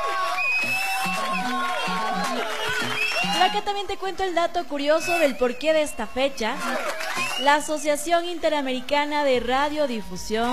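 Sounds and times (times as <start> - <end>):
applause sound effect: 0.0 - 3.8, 6.6 - 7.7
speech: 3.4 - 10.5.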